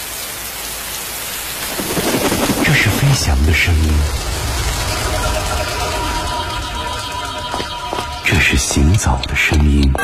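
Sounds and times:
heavy rain: 0:00.0 - 0:09.8
wind: 0:00.0 - 0:09.9
thunder rumble: 0:01.5 - 0:09.0
speech: 0:02.8 - 0:04.3, 0:08.3 - 0:10.0.

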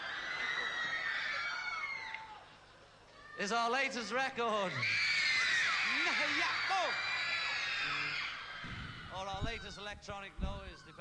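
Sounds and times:
girls screaming at a concert: 0:00.0 - 0:02.5, 0:04.7 - 0:09.8
speech: 0:03.4 - 0:05.1, 0:09.2 - 0:10.9.

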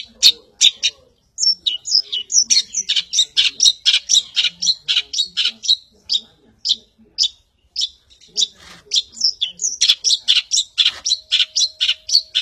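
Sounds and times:
Long-tailed shrike song of harsh chattering and buzzy scratchy notes: 0:00.0 - 0:12.4.

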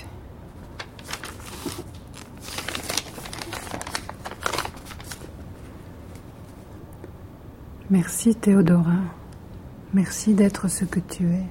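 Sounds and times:
paper letter being unfolded and handled for reading in a hotel room: 0:00.6 - 0:06.6
speech: 0:07.9 - 0:09.2, 0:09.9 - 0:11.4.

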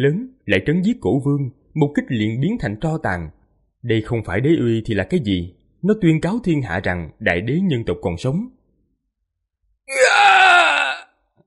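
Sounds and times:
speech: 0:00.0 - 0:08.6, 0:09.9 - 0:10.6
anguished scream: 0:09.9 - 0:11.1.

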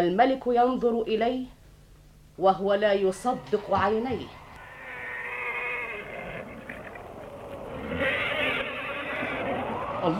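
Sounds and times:
speech: 0:00.0 - 0:01.6, 0:02.4 - 0:04.4
steady rumbling background: 0:02.2 - 0:10.1
horse whinnying: 0:04.3 - 0:10.1.

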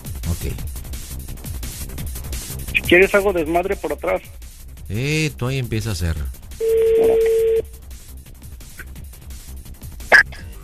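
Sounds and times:
speech: 0:00.4 - 0:00.8, 0:02.9 - 0:07.4
telephone dial tone: 0:06.6 - 0:07.6.

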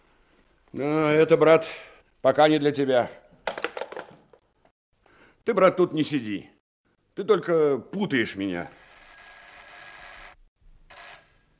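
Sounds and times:
speech: 0:00.7 - 0:03.2, 0:05.5 - 0:06.5, 0:07.2 - 0:08.8
telephone ringing: 0:08.3 - 0:11.5.

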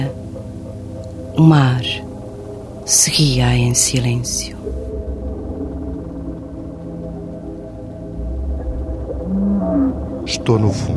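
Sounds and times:
speech: 0:00.0 - 0:00.2, 0:01.4 - 0:02.0, 0:02.9 - 0:04.6, 0:10.3 - 0:10.9
whale song: 0:08.0 - 0:10.3.

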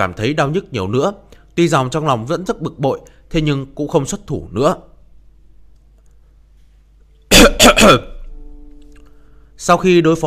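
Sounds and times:
speech: 0:00.0 - 0:04.9, 0:07.4 - 0:08.1, 0:09.6 - 0:10.2
dry cough: 0:07.3 - 0:08.2.

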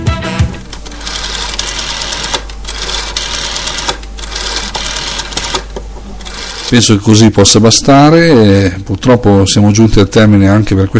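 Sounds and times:
old Italian SIP telephone sound: 0:00.7 - 0:06.8
speech: 0:06.7 - 0:10.9.

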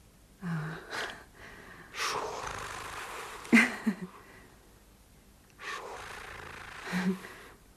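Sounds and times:
person breathing heavily: 0:00.4 - 0:04.6, 0:05.6 - 0:07.6.

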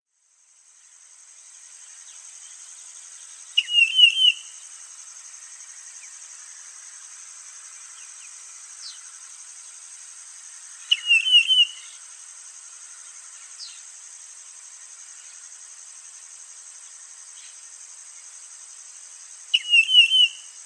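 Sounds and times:
wavering whistled bird song: 0:03.6 - 0:04.6, 0:10.8 - 0:12.0, 0:19.5 - 0:20.6.

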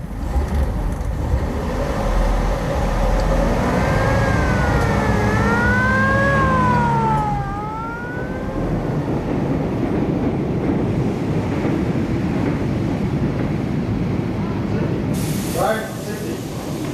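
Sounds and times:
police radio car engine roaring as it speeds off toward East Acton: 0:00.0 - 0:10.4
suburban train bound for West Boisrecht rumbling and clattering: 0:00.0 - 0:16.9
police car siren wailing: 0:03.2 - 0:09.7.

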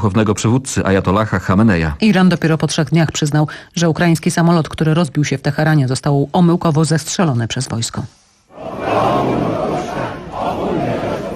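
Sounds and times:
speech: 0:00.0 - 0:09.6
protesters chanting slogans in front of a university in Tehran: 0:08.5 - 0:11.3.

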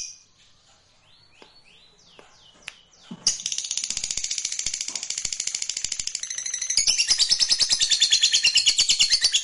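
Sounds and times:
fighter-type lovebird giving a long rattling trill: 0:03.3 - 0:09.2.

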